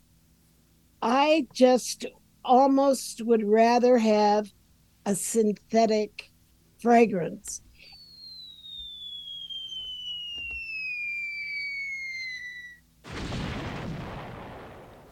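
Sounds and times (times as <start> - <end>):
speech: 1.0 - 7.6
cartoonish falling-bomb descending whistle: 7.8 - 12.8
loud broad rumbling explosion: 13.1 - 15.1.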